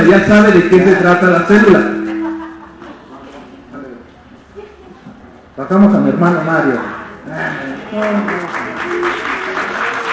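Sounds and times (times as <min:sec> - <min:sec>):
speech: 0:00.1 - 0:02.0, 0:05.6 - 0:09.4
applause: 0:07.9 - 0:10.1.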